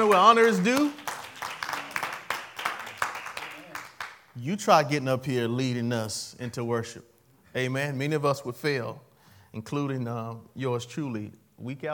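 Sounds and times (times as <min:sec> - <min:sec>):
church congregation clapping for a worship leader: 0:00.0 - 0:04.4
speech: 0:00.1 - 0:01.1, 0:04.4 - 0:11.9.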